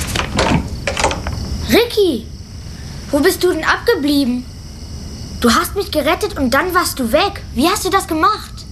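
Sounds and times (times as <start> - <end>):
door being opened: 0.1 - 1.6
speech: 1.8 - 2.4, 3.1 - 4.5, 5.4 - 8.5.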